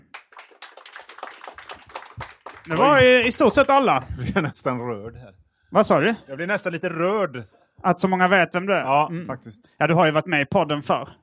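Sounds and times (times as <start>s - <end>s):
audience applause: 0.0s - 4.0s
speech: 2.6s - 11.2s.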